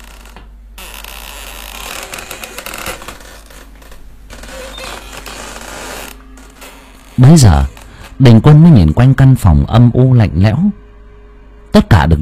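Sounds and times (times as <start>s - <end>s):
door creaking as it is slowly pushed open: 0.0s - 8.2s
low steady hum: 0.0s - 12.2s
speech: 7.2s - 10.8s, 11.7s - 12.2s.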